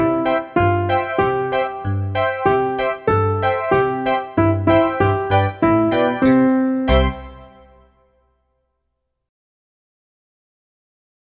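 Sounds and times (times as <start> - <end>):
instrumental music without vocals: 0.0 - 8.2.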